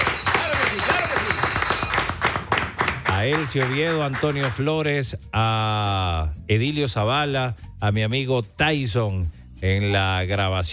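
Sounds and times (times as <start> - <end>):
warm applause: 0.0 - 4.8
speech: 3.2 - 10.7.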